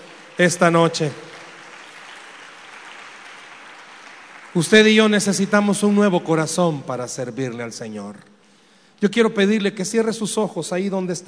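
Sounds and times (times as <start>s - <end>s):
crowd applauding: 0.0s - 6.1s
speech: 0.4s - 1.3s, 4.5s - 8.4s, 9.0s - 11.2s.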